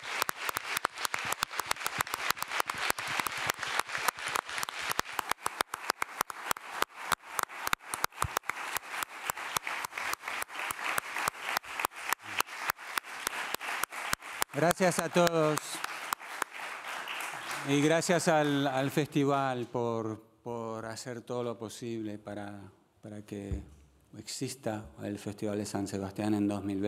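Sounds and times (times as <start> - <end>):
press conference audience applause: 0.0 - 19.1
speech: 14.6 - 15.8, 17.6 - 26.8.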